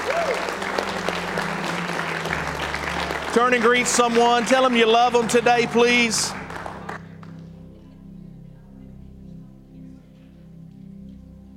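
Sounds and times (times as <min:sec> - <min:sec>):
audience applause, hand clap of praise: 0:00.0 - 0:07.6
speech: 0:03.4 - 0:06.4.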